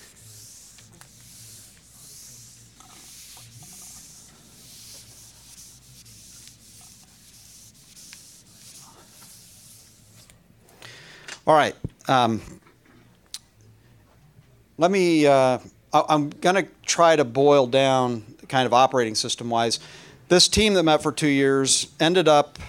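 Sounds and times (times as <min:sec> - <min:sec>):
eraser rubbing writing off a board: 0:00.0 - 0:10.3
speech: 0:11.5 - 0:12.6, 0:14.8 - 0:22.6.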